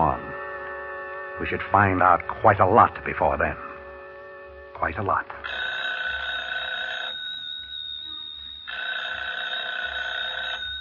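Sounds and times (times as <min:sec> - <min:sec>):
speech: 0:01.4 - 0:03.7, 0:04.8 - 0:05.6
telephone ringing with electric bell: 0:05.4 - 0:10.7.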